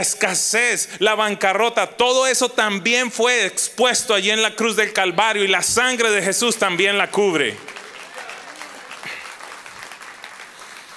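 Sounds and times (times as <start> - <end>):
speech: 0.0 - 7.8
soft golf-style applause: 7.1 - 10.9.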